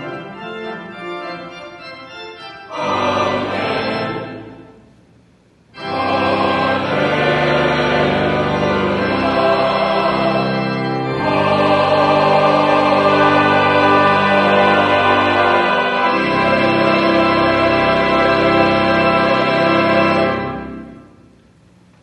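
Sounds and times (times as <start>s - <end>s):
choral singing: 2.7s - 4.8s, 5.8s - 21.1s.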